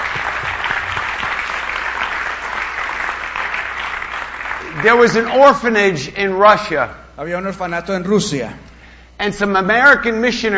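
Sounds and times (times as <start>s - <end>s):
audience applause: 0.0s - 5.5s
speech: 4.8s - 10.5s.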